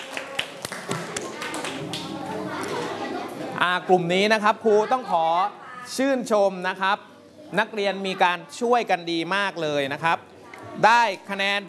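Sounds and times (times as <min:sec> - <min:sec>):
students clapping hands: 0:00.0 - 0:02.3
faint murmur of voices in the room: 0:00.0 - 0:11.6
speech: 0:03.6 - 0:11.6.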